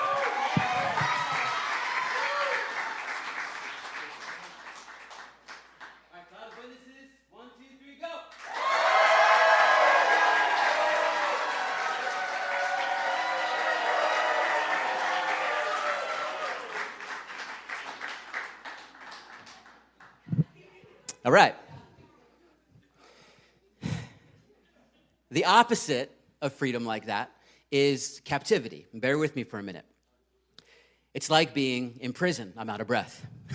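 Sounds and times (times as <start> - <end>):
audience at a sermon clapping and cheering: 0.0 - 6.7, 8.3 - 20.4
speech: 21.3 - 21.6, 25.4 - 29.9, 31.1 - 33.4.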